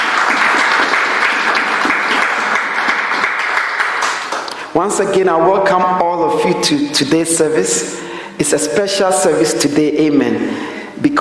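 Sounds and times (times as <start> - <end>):
audience clapping hands: 0.0 - 4.6
speech: 4.9 - 11.1.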